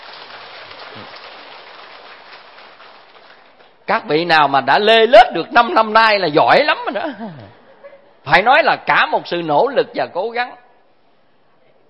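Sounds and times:
audience applause: 0.0 - 3.8
speech: 3.9 - 7.6, 8.2 - 10.6.

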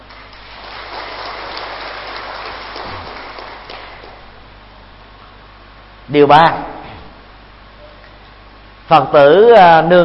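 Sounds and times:
audience applause: 0.0 - 4.3
speech: 6.1 - 6.7, 8.9 - 10.0.

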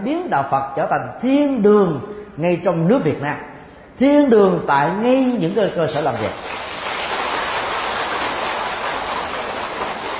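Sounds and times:
speech: 0.0 - 6.6
Buddhist followers applauding: 6.4 - 10.1.

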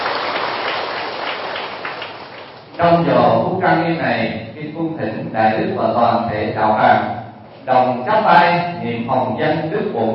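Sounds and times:
applause at a Buddhist ceremony in Bến Tre, Vietnam: 0.0 - 2.8
speech: 2.8 - 10.1.

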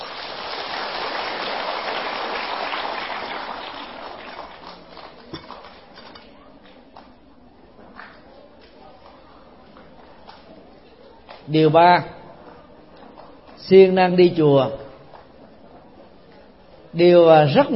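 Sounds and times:
large crowd applauding: 0.0 - 5.9
speech: 11.5 - 12.2, 13.7 - 14.8, 17.0 - 17.7.

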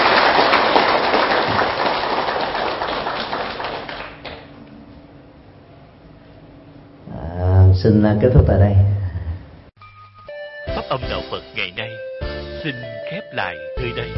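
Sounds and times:
audience applause: 0.0 - 4.6
speech: 7.8 - 9.0, 10.9 - 14.1.

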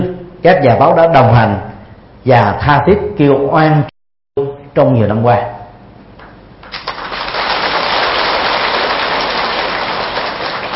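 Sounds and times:
speech: 0.4 - 3.9, 4.8 - 5.6
crowd applause: 6.7 - 10.7.

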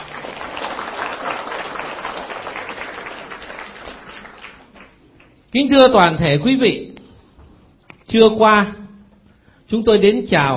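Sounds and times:
crowd applause in a hall: 0.0 - 5.4
speech: 5.5 - 6.9, 8.1 - 8.8, 9.7 - 10.5.

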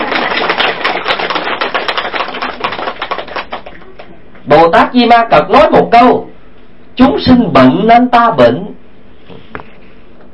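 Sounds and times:
round of applause: 0.0 - 4.2
speech: 4.6 - 6.3, 7.0 - 8.7.

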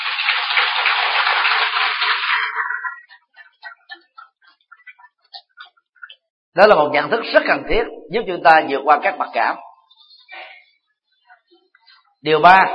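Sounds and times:
audience applause: 0.0 - 3.6
speech: 6.6 - 9.6, 12.2 - 12.7.

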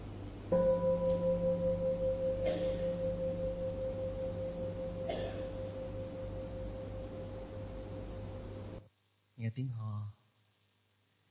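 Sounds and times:
bell ringing: 0.6 - 8.8
speech: 9.5 - 10.2.

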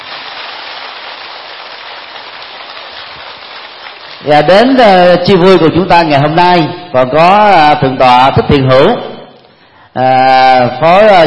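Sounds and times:
crowd applause: 0.0 - 4.3
speech: 4.2 - 9.1, 10.0 - 11.2.

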